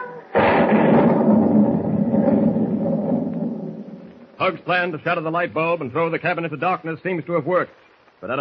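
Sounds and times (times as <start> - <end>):
thunderstorm at sea: 0.3 - 4.1
speech: 4.5 - 8.4.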